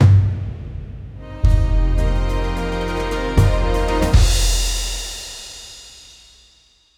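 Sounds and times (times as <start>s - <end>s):
epic cinematic orchestral hero intro music: 1.1s - 5.4s.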